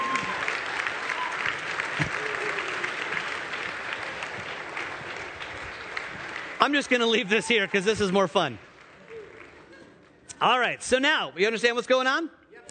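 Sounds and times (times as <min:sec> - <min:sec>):
audience applause: 0:00.0 - 0:10.0
speech: 0:06.6 - 0:08.7, 0:10.4 - 0:12.4.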